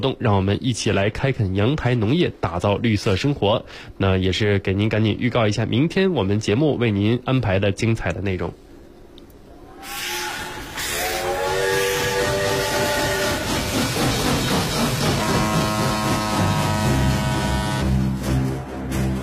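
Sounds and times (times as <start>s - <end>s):
speech: 0.0s - 8.6s
train running on rails: 9.9s - 19.2s.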